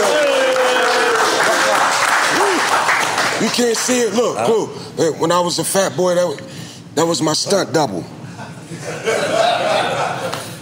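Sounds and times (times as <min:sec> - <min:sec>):
audience cheering and shouting: 0:00.0 - 0:03.5
audience clapping: 0:00.0 - 0:04.3
speech: 0:03.5 - 0:09.2
laughter: 0:08.2 - 0:10.6.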